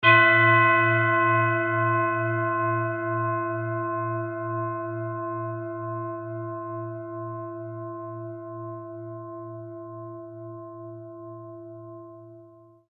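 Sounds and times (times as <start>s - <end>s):
Tibetan singing bowl: 0.0s - 12.9s.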